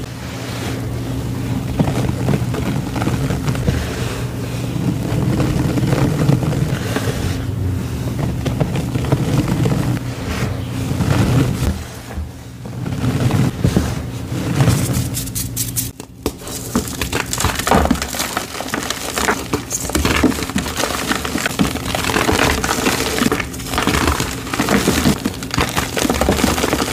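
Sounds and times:
gym chalk crushed and crumbled: 0.0 - 26.9.

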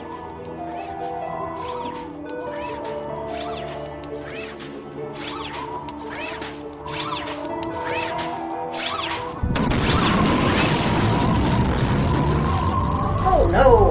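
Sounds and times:
wailing tones of a spaceship crash-landing on Mars: 0.0 - 13.8
roaring rumble of a spaceship crash-landing on Mars: 9.4 - 13.8.

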